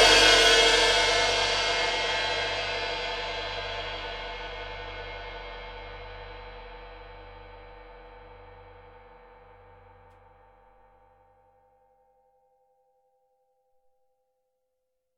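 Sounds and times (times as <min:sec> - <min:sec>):
heavy 20-inch MB20 ride cymbal: 0:00.0 - 0:03.3.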